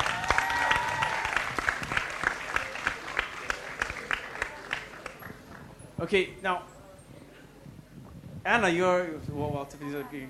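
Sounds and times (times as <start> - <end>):
applause: 0.0 - 5.7
speech: 6.0 - 6.7, 8.4 - 10.2.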